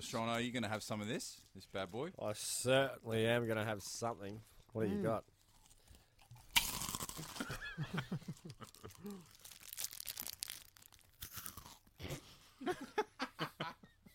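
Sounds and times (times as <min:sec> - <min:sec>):
speech: 0:00.0 - 0:05.3, 0:07.2 - 0:09.5, 0:12.0 - 0:13.8
crunching a honeycomb chocolate bar: 0:05.4 - 0:12.0.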